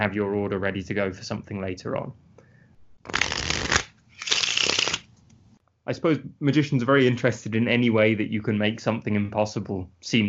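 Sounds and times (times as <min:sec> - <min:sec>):
speech: 0:00.0 - 0:02.3, 0:05.9 - 0:10.2
pack of playing cards shuffled in riffles: 0:03.1 - 0:05.4.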